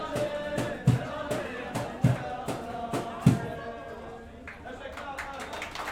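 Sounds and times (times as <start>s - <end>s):
Kurdish folk song in Galata Istanbul: 0.0s - 4.5s.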